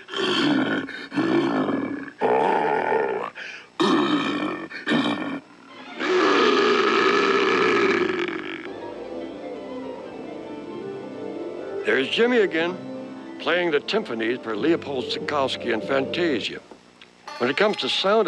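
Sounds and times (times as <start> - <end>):
bear growl sound effect made with a lamp chimney: 0.0 - 8.7
speech: 12.0 - 16.7, 17.4 - 18.2.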